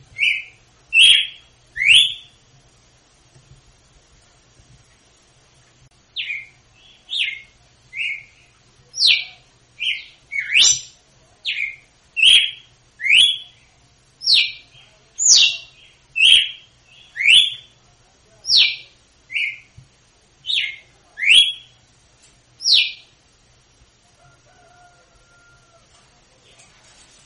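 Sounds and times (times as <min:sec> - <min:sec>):
female red-cowled cardinal singing in Northeast Brazil style: 0:00.2 - 0:02.4, 0:06.2 - 0:13.6, 0:14.2 - 0:17.7, 0:18.5 - 0:19.7, 0:20.5 - 0:21.8.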